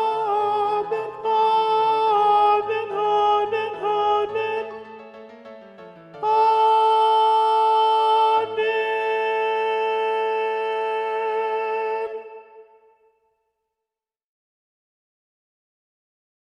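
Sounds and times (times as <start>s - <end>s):
alto voice singing: 0.0s - 5.4s, 6.1s - 13.0s.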